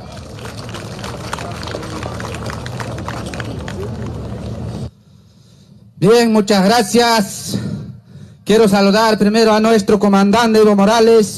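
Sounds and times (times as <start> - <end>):
loud applause: 0.0 - 4.8
speech: 6.0 - 7.6, 8.5 - 11.3.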